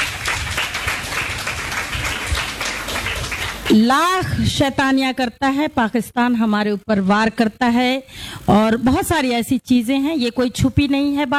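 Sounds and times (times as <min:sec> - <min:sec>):
crowd applauding: 0:00.0 - 0:03.8
speech: 0:03.7 - 0:11.3.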